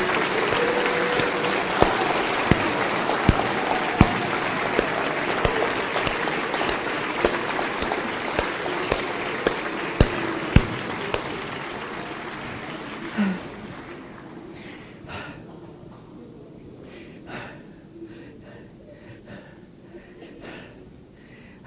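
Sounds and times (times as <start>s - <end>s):
crowd applauding: 0.0s - 14.6s.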